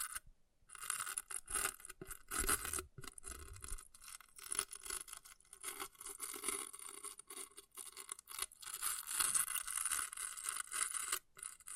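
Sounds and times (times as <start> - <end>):
object scratching in rough gritty strokes: 0.0 - 11.7.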